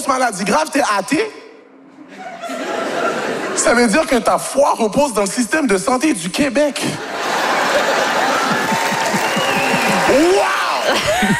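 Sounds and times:
speech: 0.0 - 1.4, 3.6 - 7.2, 7.8 - 8.8
laughter: 2.0 - 4.2, 6.8 - 11.3
audience applause: 7.2 - 11.3.

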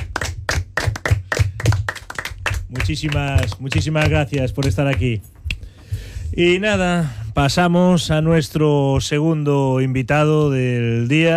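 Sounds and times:
applause: 0.0 - 5.2
speech: 2.8 - 5.4, 6.4 - 11.3.

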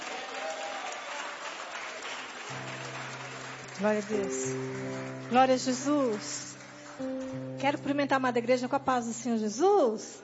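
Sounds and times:
audience applauding: 0.0 - 8.0
speech: 3.8 - 10.2.

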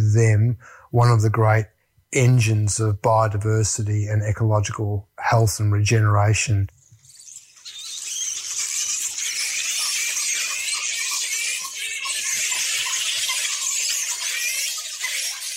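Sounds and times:
speech: 0.1 - 6.8
colony of flying foxes chattering and squealing: 6.8 - 15.5.

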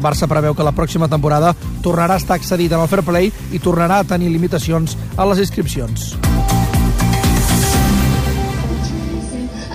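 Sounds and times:
speech: 0.0 - 6.6
live band playing with heavy deep bass at the Cruïlla festival, Parc del Fòrum: 2.6 - 9.5.

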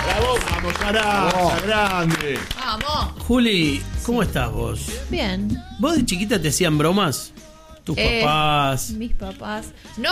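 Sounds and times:
audience applause: 0.0 - 3.1
speech: 0.6 - 10.1.

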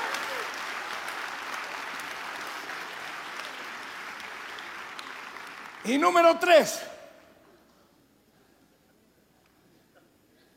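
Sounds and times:
audience applause: 0.0 - 6.8
speech: 5.8 - 6.9.

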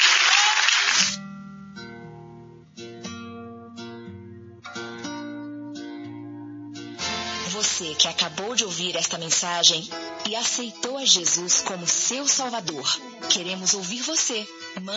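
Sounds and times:
audience applause: 0.0 - 1.2
keyboard music with sustained chords: 1.2 - 14.9
speech: 7.8 - 14.9.

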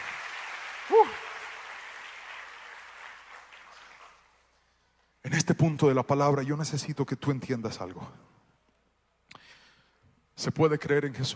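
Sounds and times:
audience applause: 0.0 - 4.5
speech: 0.9 - 1.2, 5.4 - 8.2, 10.4 - 11.3.

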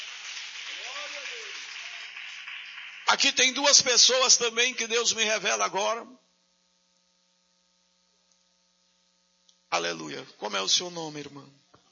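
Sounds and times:
audience applauding: 0.0 - 4.6
speech: 3.1 - 6.2, 9.8 - 11.6.

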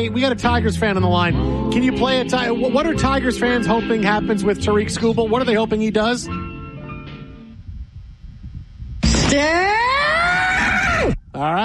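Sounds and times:
speech: 0.0 - 6.5, 9.4 - 9.8, 11.4 - 11.6
fan screaming: 9.4 - 11.2.

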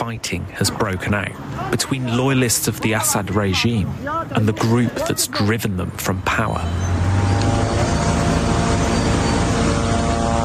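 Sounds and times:
speech: 0.1 - 7.8
surveillance drones buzzing overhead: 6.0 - 10.4.

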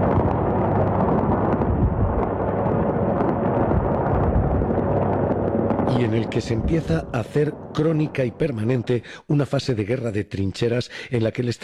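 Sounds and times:
bombs exploding: 0.0 - 9.0
speech: 6.0 - 11.6.

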